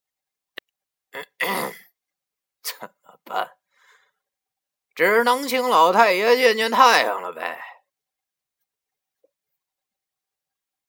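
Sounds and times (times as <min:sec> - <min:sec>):
throat clearing: 0:01.2 - 0:01.9
speech: 0:05.0 - 0:07.7.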